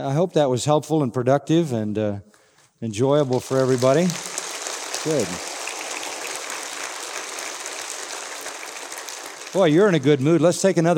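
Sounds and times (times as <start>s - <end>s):
speech: 0.0s - 4.3s, 5.0s - 5.5s, 9.5s - 10.9s
crowd applause: 3.2s - 10.7s.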